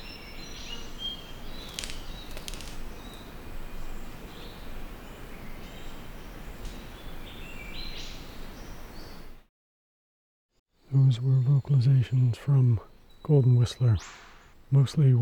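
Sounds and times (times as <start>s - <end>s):
Pachycephala pectoralis golden whistler calling: 0.0s - 4.6s, 11.0s - 15.1s.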